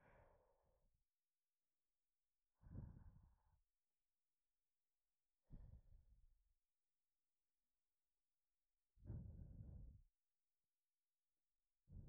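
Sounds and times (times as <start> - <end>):
breathing: 0.0 - 0.9, 2.6 - 3.7, 5.4 - 6.2, 9.0 - 10.2, 11.8 - 12.0
sleep breathing: 9.1 - 10.0.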